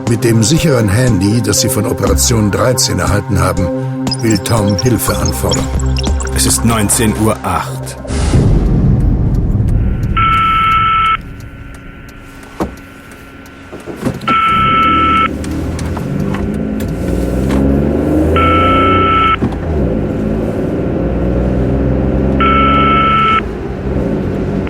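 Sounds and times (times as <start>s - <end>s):
speech: 0.1s - 8.1s
car engine roaring with rising revs: 1.0s - 24.6s
high electronic ringing tone: 3.8s - 7.6s, 9.6s - 13.7s, 14.3s - 15.3s, 18.4s - 19.4s, 22.4s - 23.4s.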